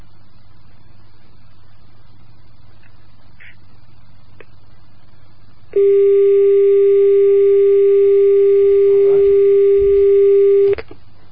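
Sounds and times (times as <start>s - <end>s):
steady telephone line tone during a failed call: 5.7s - 10.8s.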